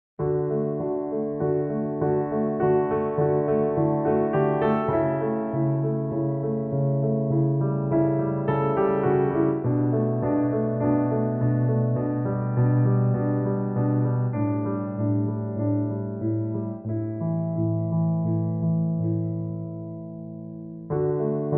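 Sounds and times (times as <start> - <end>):
piano: 0.2 - 21.5.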